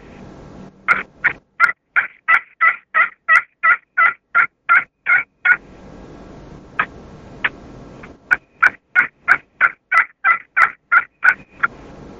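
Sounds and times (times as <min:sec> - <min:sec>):
soft turkey yelps made with a dual-threat friction hunting call: 0:00.9 - 0:05.6, 0:08.3 - 0:11.7.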